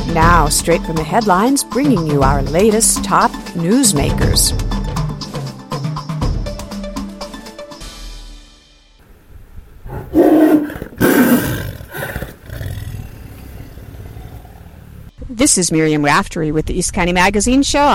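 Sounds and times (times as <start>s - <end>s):
speech: 0.1s - 4.7s, 15.4s - 17.9s
tiger Taboo growling: 9.8s - 15.1s.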